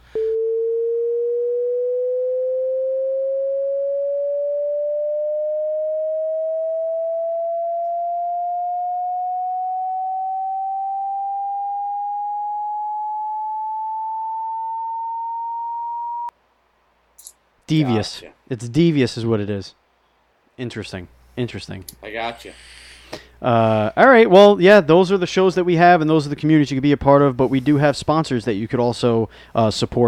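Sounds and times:
long censor beep tone: 0.0s - 16.3s
speech: 17.7s - 19.8s, 20.6s - 22.8s, 23.4s - 30.0s.

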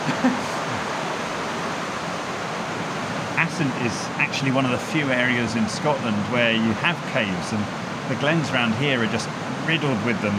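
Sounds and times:
underground river stream flowing in cave: 0.0s - 10.3s
speech: 3.6s - 10.3s.

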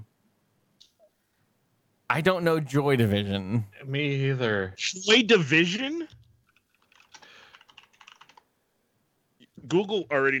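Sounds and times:
speech: 2.1s - 6.2s, 9.6s - 10.3s
typing on a computer keyboard: 6.5s - 8.5s.

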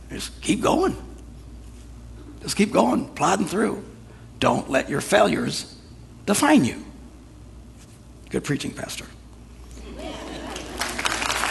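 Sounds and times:
speech: 0.2s - 1.1s, 2.4s - 6.9s, 8.3s - 9.2s
audience clapping: 10.3s - 11.4s.

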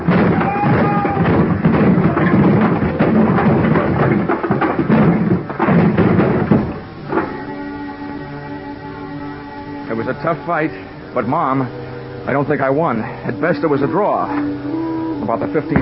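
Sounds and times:
pile of wooden boxes crashing down: 0.0s - 7.7s, 15.4s - 15.8s
speech: 10.2s - 15.8s.

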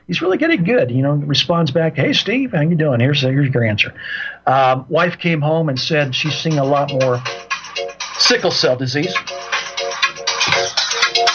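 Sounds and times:
speech: 0.1s - 9.5s
phone ringtone electronic melody: 6.3s - 11.3s.

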